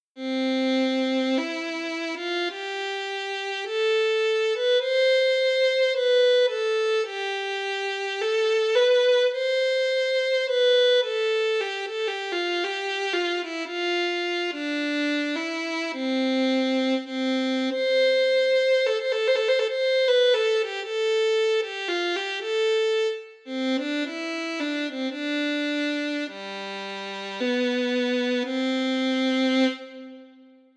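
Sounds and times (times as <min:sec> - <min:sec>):
violin: 0:00.1 - 0:30.7.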